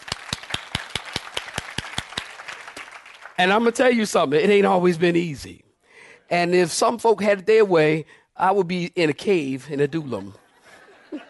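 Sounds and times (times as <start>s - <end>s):
audience clapping hands: 0.0s - 4.0s
speech: 3.4s - 5.6s, 6.3s - 10.4s
laughter: 9.8s - 11.2s.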